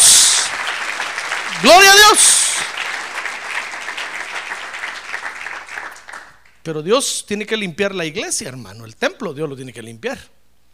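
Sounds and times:
audience applauding: 0.0 - 6.5
speech: 1.6 - 2.4, 6.6 - 10.4.

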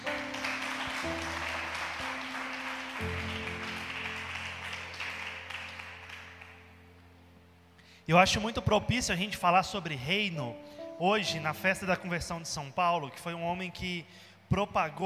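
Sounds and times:
audience applauding: 0.0 - 6.8
low organ-like chords: 0.0 - 12.8
speech: 8.1 - 15.0.

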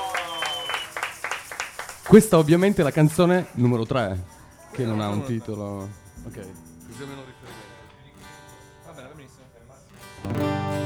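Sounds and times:
small group clapping: 0.0 - 3.5
speech: 2.1 - 7.6.

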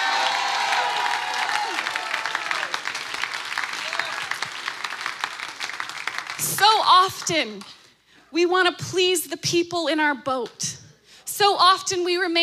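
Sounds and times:
crowd cheering and excited shouts: 0.0 - 2.9
crowd applauding loudly: 0.0 - 7.7
speech: 6.4 - 10.8, 11.4 - 12.4.

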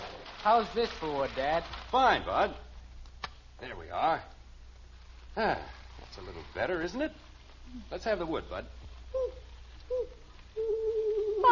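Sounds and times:
speech: 0.4 - 2.7, 3.6 - 4.3, 5.4 - 10.9
owl hooting: 9.1 - 11.5.

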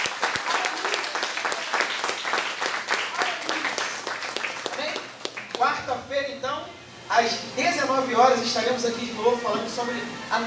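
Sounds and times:
audience applause: 0.0 - 5.6
speech: 7.2 - 10.4.

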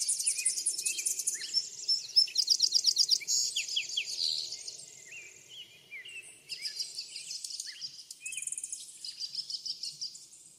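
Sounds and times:
birdsong from several birds: 0.0 - 10.5.

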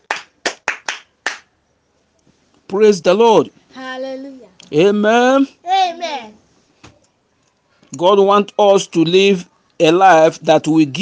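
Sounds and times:
audience clapping hands: 0.0 - 1.5
speech: 2.7 - 3.6, 4.7 - 5.6, 8.0 - 11.0.

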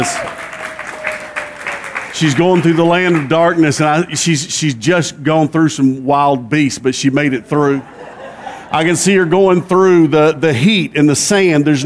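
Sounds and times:
speech: 0.0 - 0.4, 2.2 - 8.0, 8.7 - 11.8
audience clapping: 0.0 - 3.8
laughter: 7.5 - 10.4.

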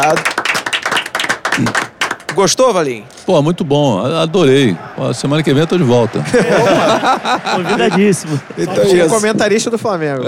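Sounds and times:
round of applause from a few people: 0.0 - 3.0, 5.1 - 9.9
speech: 0.1 - 0.3, 2.4 - 10.2
laughter: 4.6 - 10.2.

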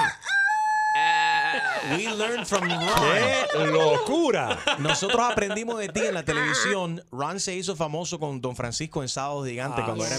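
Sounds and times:
people imitating animal calls, bleats, crowing and squawks: 0.0 - 3.9, 6.0 - 6.8
laughter: 1.3 - 6.8
speech: 1.8 - 10.1.

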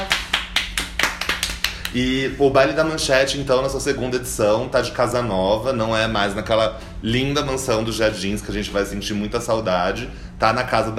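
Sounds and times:
hands clapping: 0.0 - 2.0
speech: 1.9 - 10.9.

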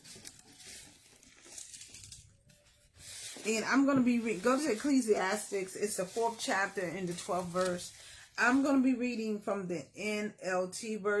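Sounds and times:
sheets of paper being shuffled and rustled: 0.0 - 8.8
speech: 3.4 - 11.1.

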